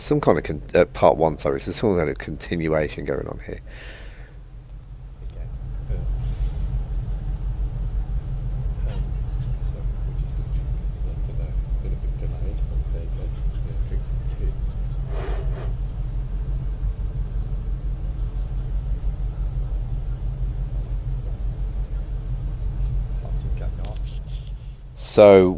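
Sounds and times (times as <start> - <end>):
speech: 0.1 - 4.0, 25.0 - 25.5
train rumbling on approach to London: 5.4 - 23.9.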